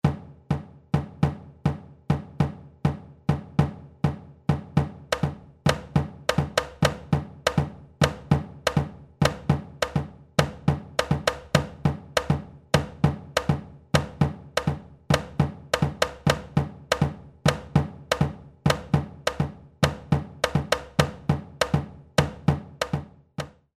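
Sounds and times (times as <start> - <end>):
batucada tamborim drumming: 0.0 - 23.7.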